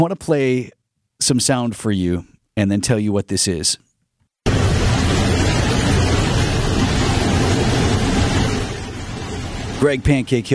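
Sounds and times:
speech: 0.0 - 3.9, 9.8 - 10.5
wind noise through open airline jet door while landing in South Korea: 4.5 - 9.8.

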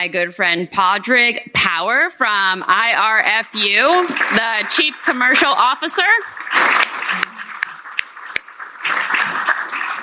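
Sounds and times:
speech: 0.0 - 7.3
audience applause: 3.8 - 10.0.

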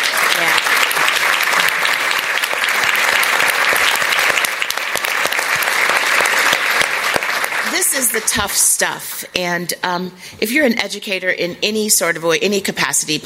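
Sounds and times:
audience round of applause: 0.0 - 8.6
speech: 8.1 - 13.2.

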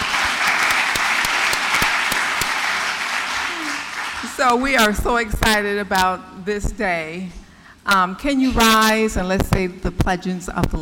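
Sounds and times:
audience applause: 0.0 - 4.4
speech: 4.4 - 10.8.

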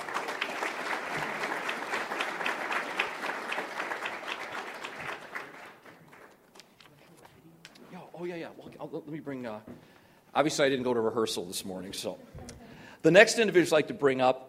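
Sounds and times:
warm audience applause: 0.0 - 6.4
speech: 8.6 - 14.4.

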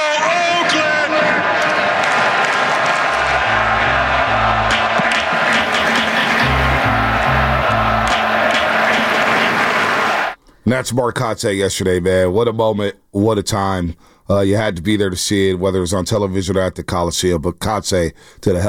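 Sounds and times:
huge stadium crowd roaring and cheering: 0.0 - 10.4
rhythmic chant-like pattern of deep pulsing tones: 2.5 - 10.4
speech: 10.7 - 18.6.

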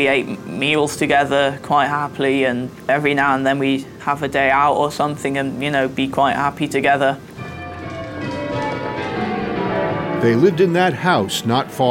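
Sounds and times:
speech: 0.0 - 7.3, 10.2 - 11.8
church bells of a medieval abbey near Pershore ringing: 6.7 - 11.8.

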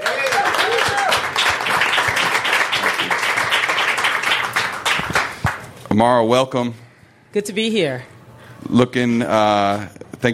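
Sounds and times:
audience applause welcoming a progressive candidate at a first-anniversary show: 0.0 - 5.6
speech: 6.0 - 10.3.

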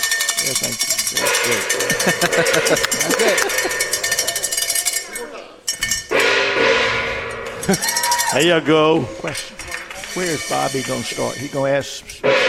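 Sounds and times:
speech: 0.4 - 4.0, 7.7 - 12.4
laughter: 1.2 - 4.6, 7.6 - 8.2, 8.8 - 10.1
gong being hit: 1.2 - 5.0, 6.1 - 8.3.

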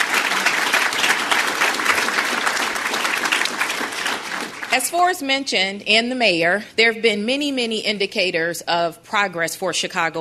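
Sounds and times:
audience applause: 0.0 - 4.8
speech: 4.8 - 10.2.

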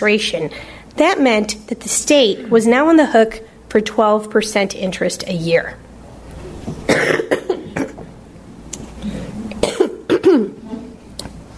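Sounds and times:
speech: 0.0 - 5.8
person with asthma coughing: 6.9 - 8.1, 9.6 - 10.8
throat clearing: 9.1 - 11.0.

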